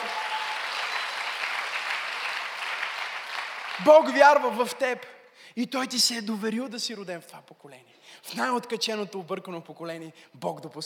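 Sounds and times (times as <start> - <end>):
audience applause: 0.0 - 4.1
speech: 3.8 - 10.8.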